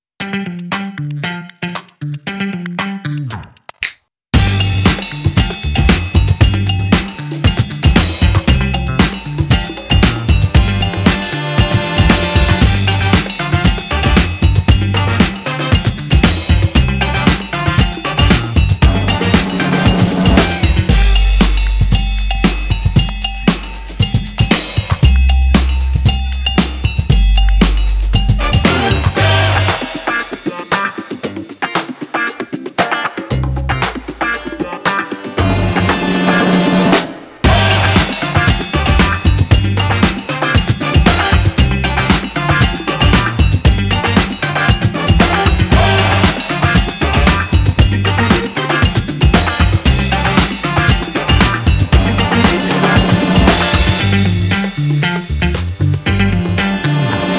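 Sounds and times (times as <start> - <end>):
funk music: 0.2 - 57.3.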